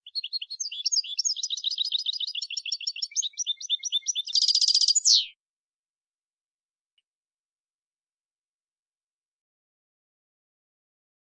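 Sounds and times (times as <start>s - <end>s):
European goldfinch twittering: 0.0s - 5.3s.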